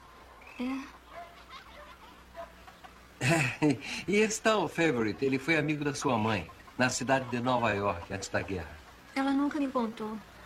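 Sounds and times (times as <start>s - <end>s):
chickens clucking: 0.0s - 10.4s
speech: 0.6s - 1.0s, 3.2s - 10.3s
laughter: 1.2s - 4.3s.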